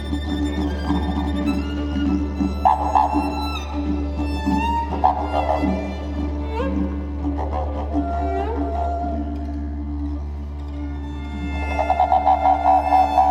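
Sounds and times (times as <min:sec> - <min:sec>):
improvised music: 0:00.0 - 0:13.2.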